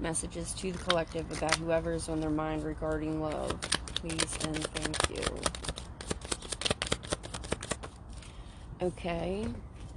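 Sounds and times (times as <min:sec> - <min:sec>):
speech: 0:00.0 - 0:05.8, 0:08.8 - 0:09.7
deck of reading cards being shuffled: 0:00.6 - 0:08.3.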